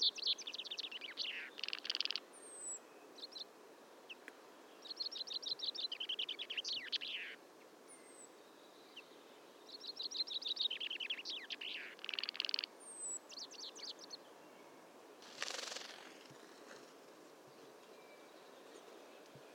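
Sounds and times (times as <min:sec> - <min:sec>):
common chaffinch Fringilla coelebs singing: 0:00.0 - 0:03.5, 0:04.8 - 0:08.3, 0:09.7 - 0:14.2.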